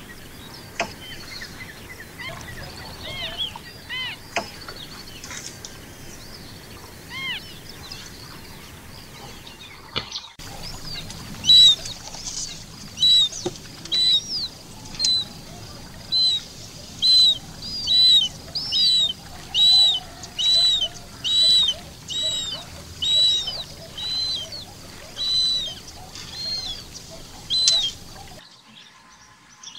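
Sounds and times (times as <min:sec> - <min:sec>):
faint chirps of other birds: 0:00.0 - 0:29.7
western marsh harrier high whistled call: 0:01.0 - 0:05.0, 0:07.1 - 0:07.5, 0:10.4 - 0:28.4.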